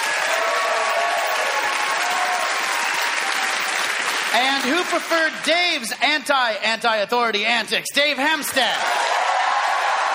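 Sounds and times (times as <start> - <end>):
audience applause: 0.0 - 5.9, 8.7 - 10.1
speech: 4.3 - 9.2.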